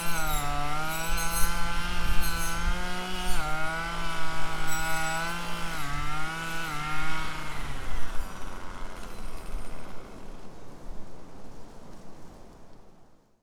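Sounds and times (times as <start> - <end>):
decontamination mowing at a university: 0.0 - 10.5.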